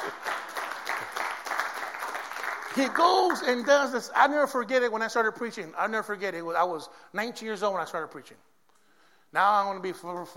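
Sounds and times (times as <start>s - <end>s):
audience clapping: 0.0s - 4.0s
speech: 2.8s - 8.5s, 9.3s - 10.3s.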